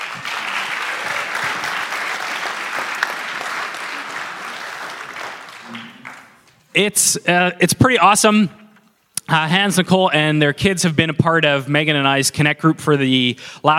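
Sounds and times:
audience applause: 0:00.0 - 0:06.6
speech: 0:06.8 - 0:08.6, 0:09.3 - 0:13.7.

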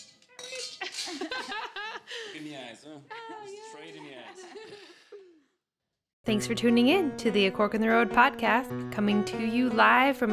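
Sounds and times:
champagne glasses clinking in a toast: 0:00.0 - 0:01.7
laughter: 0:00.6 - 0:05.4
speech: 0:02.4 - 0:05.0, 0:06.3 - 0:10.3.

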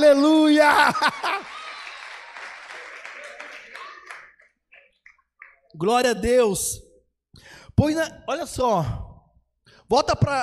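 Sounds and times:
speech: 0:00.0 - 0:01.6, 0:05.8 - 0:06.8, 0:07.8 - 0:09.0, 0:09.9 - 0:10.4
laughter: 0:00.5 - 0:02.1
audience applause: 0:01.0 - 0:04.5.

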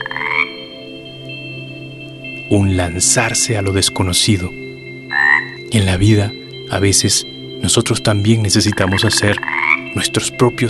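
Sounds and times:
chorus of frogs: 0:00.0 - 0:01.4, 0:03.6 - 0:10.6
frogs croaking: 0:00.0 - 0:10.6
speech: 0:02.5 - 0:04.7, 0:05.7 - 0:10.6.

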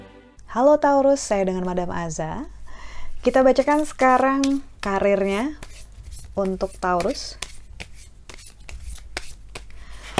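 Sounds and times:
speech: 0:00.5 - 0:02.6, 0:03.2 - 0:05.7, 0:06.4 - 0:07.4
tarot cards being shuffled: 0:03.3 - 0:04.6, 0:05.2 - 0:10.1.

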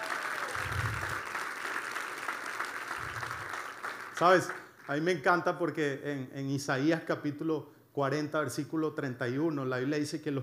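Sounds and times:
audience applauding: 0:00.0 - 0:05.0
speech: 0:04.2 - 0:10.4.

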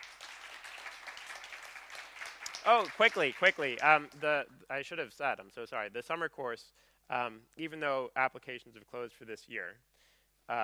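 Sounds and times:
audience applause: 0:00.0 - 0:04.1
speech: 0:02.6 - 0:09.9.

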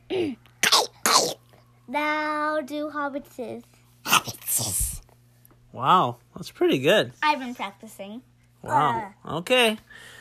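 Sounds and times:
speech: 0:00.1 - 0:00.4, 0:01.9 - 0:04.9, 0:05.7 - 0:10.1
imitated Gollum-style throaty cough: 0:00.1 - 0:01.4, 0:04.0 - 0:04.5.

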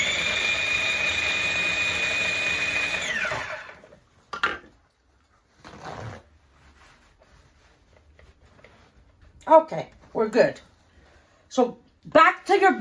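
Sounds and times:
food processor pulsing a Greek orange pie portokalopita mixture: 0:00.0 - 0:03.9
speech: 0:09.5 - 0:10.7, 0:11.5 - 0:12.7.

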